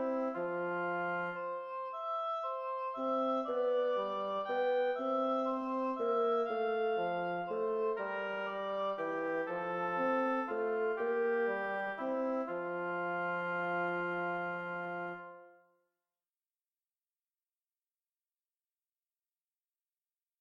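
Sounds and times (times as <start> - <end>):
oboe playing allegretto: 0.0 - 15.6
bassoon playing allegretto: 0.0 - 15.7.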